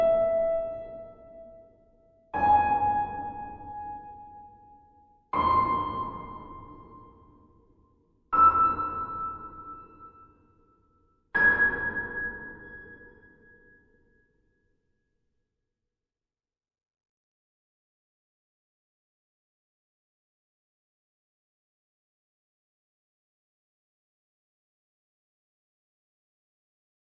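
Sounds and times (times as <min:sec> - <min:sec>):
pure space piano: 0:00.0 - 0:14.3.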